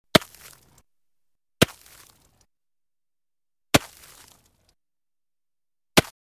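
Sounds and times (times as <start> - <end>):
axe or pick chopping ice on a lake shore: 0.1 - 0.8, 1.6 - 2.3, 3.8 - 4.5, 6.0 - 6.2.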